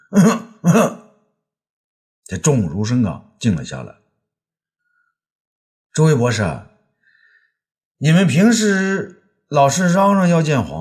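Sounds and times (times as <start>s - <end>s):
loud deliberate throat-clearing coughs: 0.0s - 1.1s
speech: 0.1s - 1.0s, 2.3s - 4.0s, 6.0s - 6.7s, 8.0s - 10.8s.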